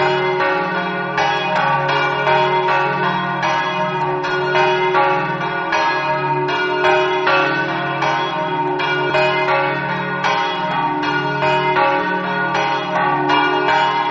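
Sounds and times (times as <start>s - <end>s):
church bells ringing in Gagliano: 0.0s - 14.1s.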